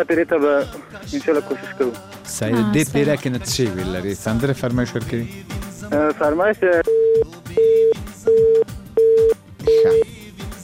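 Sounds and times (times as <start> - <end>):
speech: 0.0 - 6.9
telephone busy tone after a call is cut off: 6.9 - 10.0.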